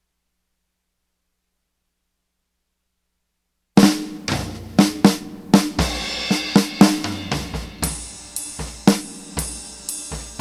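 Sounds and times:
drums: 3.8s - 10.3s.

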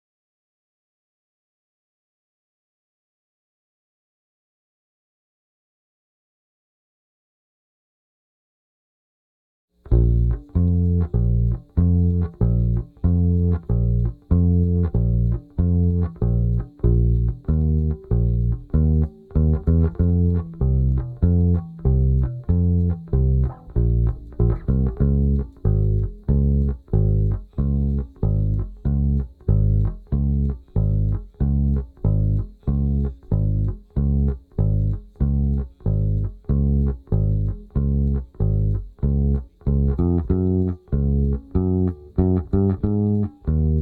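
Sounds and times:
rhythm: 9.9s - 43.7s.

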